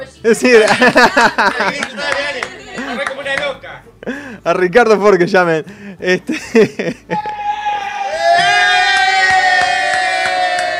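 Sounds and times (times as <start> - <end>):
speech: 0.2 - 2.4, 4.4 - 7.4
laughter: 0.6 - 3.4, 6.3 - 7.5
people applauding and cheering: 1.6 - 3.6, 7.2 - 10.7.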